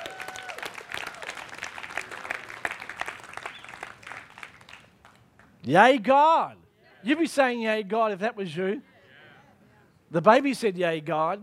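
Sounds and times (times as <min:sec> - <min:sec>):
audience applause during a sermon: 0:00.0 - 0:05.5
speech: 0:05.7 - 0:08.9, 0:10.1 - 0:11.4.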